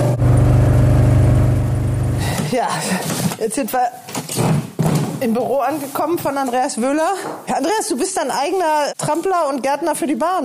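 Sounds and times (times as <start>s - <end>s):
car driving up: 0.0s - 2.4s
speech: 2.6s - 4.6s, 5.2s - 10.4s.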